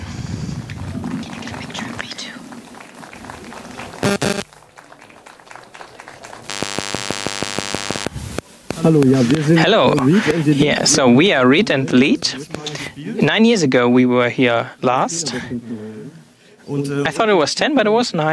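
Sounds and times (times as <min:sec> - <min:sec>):
audience applause: 0:00.6 - 0:07.7
steady electronic tone: 0:04.0 - 0:04.4, 0:06.5 - 0:08.1
speech: 0:08.9 - 0:15.9, 0:16.7 - 0:18.3.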